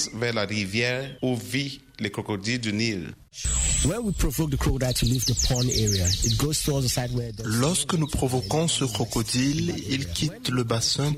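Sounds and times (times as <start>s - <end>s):
birds singing at sunset: 0.0s - 1.7s, 3.4s - 11.1s
speech: 0.0s - 11.1s.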